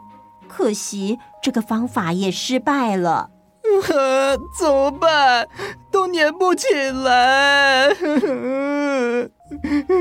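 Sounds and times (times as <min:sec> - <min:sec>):
speech: 0:00.5 - 0:09.9
boy crying: 0:03.6 - 0:05.8, 0:06.5 - 0:09.9.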